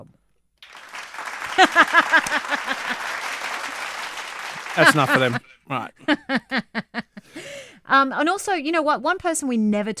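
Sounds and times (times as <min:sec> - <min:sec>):
applause: 0:00.6 - 0:05.4
laughter: 0:01.3 - 0:05.4, 0:06.0 - 0:07.3
speech: 0:04.8 - 0:09.9.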